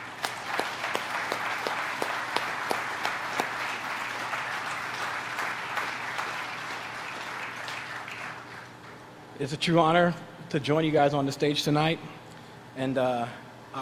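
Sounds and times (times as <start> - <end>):
audience applause: 0.0 - 9.0
speech: 9.4 - 12.2, 12.8 - 13.8.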